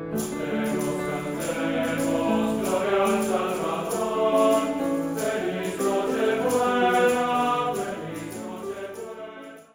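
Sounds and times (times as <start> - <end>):
boys' choir singing: 0.2 - 9.7.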